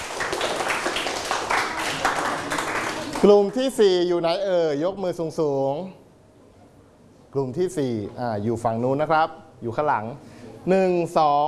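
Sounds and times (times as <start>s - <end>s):
group of people clapping: 0.0s - 3.6s
speech: 3.2s - 6.0s, 7.3s - 11.4s.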